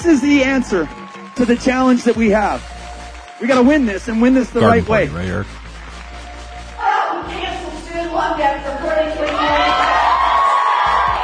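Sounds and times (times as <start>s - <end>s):
large rally crowd cheering and shouting: 0.0s - 2.6s, 4.6s - 5.4s, 8.6s - 11.2s
speech: 0.0s - 2.7s, 3.4s - 5.6s.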